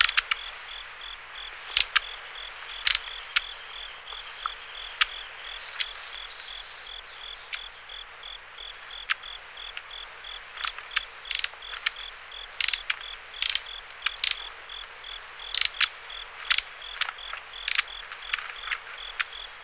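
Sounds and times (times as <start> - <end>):
long-tailed tit calling: 0.0 - 7.8, 9.0 - 19.5.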